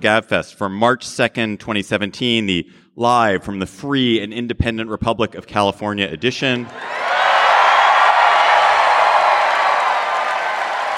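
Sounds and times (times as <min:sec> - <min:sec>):
speech: 0:00.0 - 0:07.2
large indoor theater audience applauding and cheering: 0:06.6 - 0:10.9.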